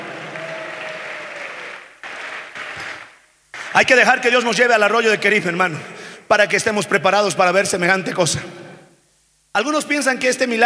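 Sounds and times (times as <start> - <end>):
audience applause: 0.0 - 4.0
speech: 3.8 - 8.6, 9.6 - 10.6.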